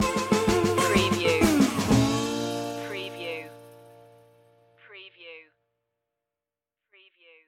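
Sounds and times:
music stinger: 0:00.0 - 0:04.6.

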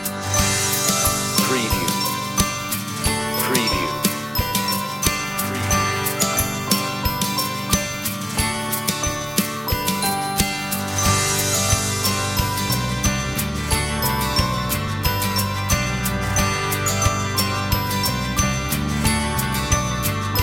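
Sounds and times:
instrumental music: 0:00.0 - 0:20.4.

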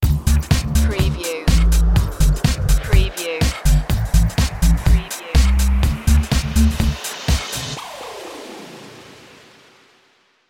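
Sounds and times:
beat stinger: 0:00.8 - 0:07.0.

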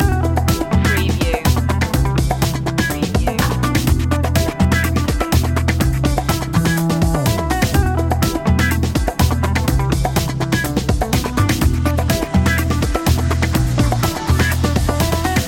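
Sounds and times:
funk loop: 0:00.0 - 0:15.4.

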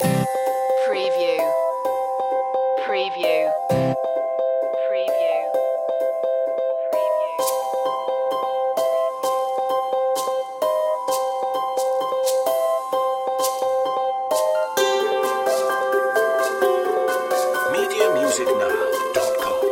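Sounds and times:
quirky music loop: 0:00.0 - 0:19.6.

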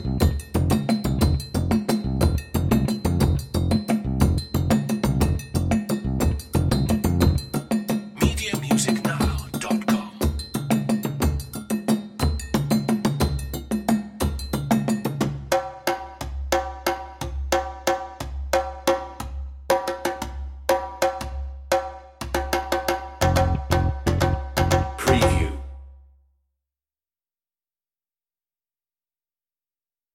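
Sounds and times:
bass: 0:00.0 - 0:09.6, 0:23.2 - 0:25.6
drums: 0:00.0 - 0:25.6.

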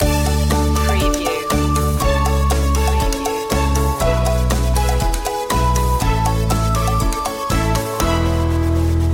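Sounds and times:
music loop: 0:00.0 - 0:09.0.

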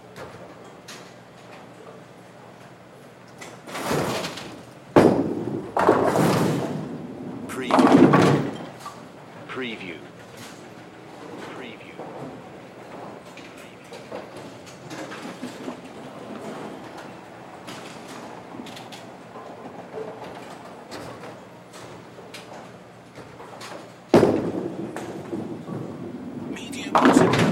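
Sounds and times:
less active bowling alley ambience: 0:00.0 - 0:27.5.

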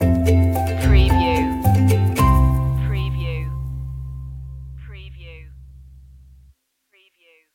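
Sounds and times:
musical stinger: 0:00.0 - 0:04.8.

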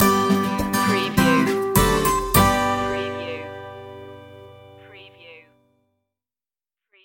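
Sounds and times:
happy stinger music: 0:00.0 - 0:05.0.

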